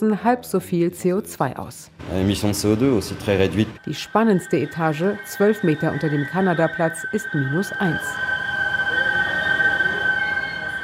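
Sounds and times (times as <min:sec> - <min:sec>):
speech: 0:00.0 - 0:08.3
Seine river water whistling through cooling system filters: 0:04.0 - 0:10.8.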